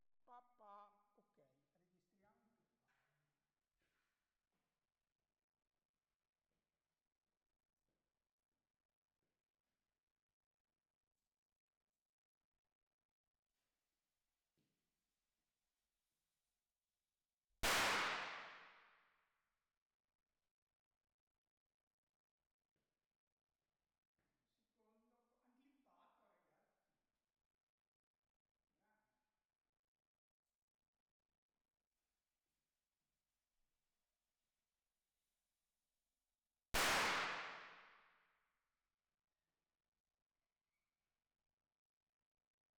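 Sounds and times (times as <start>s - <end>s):
firecrackers: 17.6s - 18.8s, 36.8s - 37.9s.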